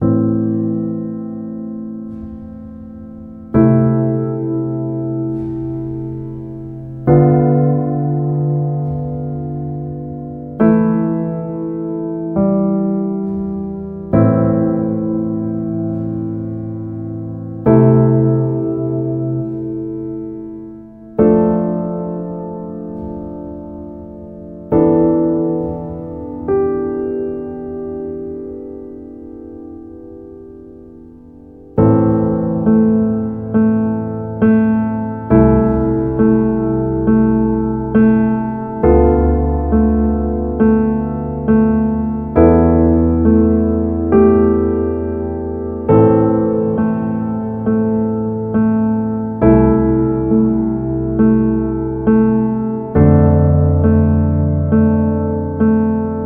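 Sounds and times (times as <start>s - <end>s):
piano: 0.0s - 56.2s.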